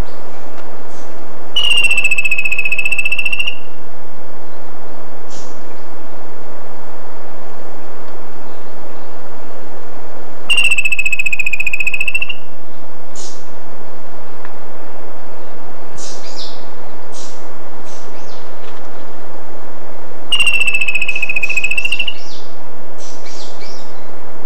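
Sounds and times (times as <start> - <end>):
bird buzzy trill: 0.9 - 3.8, 10.5 - 12.6, 16.0 - 18.7, 20.3 - 24.0.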